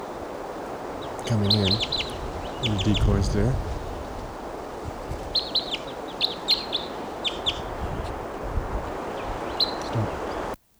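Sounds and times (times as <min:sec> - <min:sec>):
wild bird calls: 0:00.0 - 0:10.6
speech: 0:01.2 - 0:03.7.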